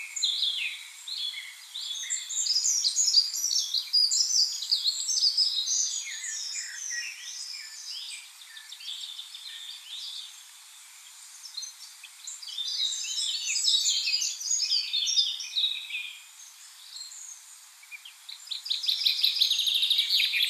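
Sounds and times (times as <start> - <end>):
common blackbird song: 0.0 - 20.4.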